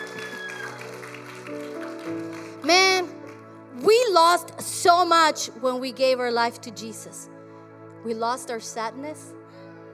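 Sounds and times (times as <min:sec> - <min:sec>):
audience round of applause: 0:00.0 - 0:03.4
speech: 0:02.7 - 0:02.9, 0:04.2 - 0:07.4, 0:08.0 - 0:09.4.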